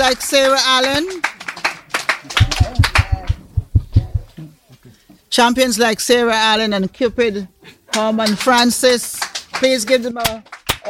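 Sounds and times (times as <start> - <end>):
speech: 0.0 - 1.4, 2.2 - 2.8, 5.4 - 10.8
round of applause: 0.0 - 3.4, 7.9 - 10.8.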